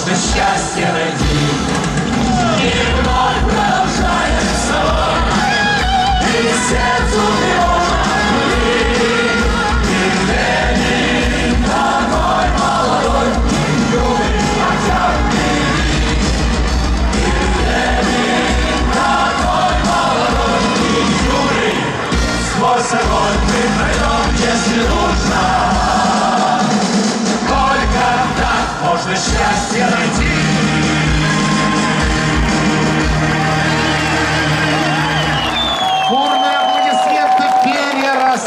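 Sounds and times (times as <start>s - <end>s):
speech: 0.2s - 1.7s
audience cheering and yelling: 0.6s - 38.4s
audience ovation applause: 1.7s - 23.7s, 30.2s - 38.4s.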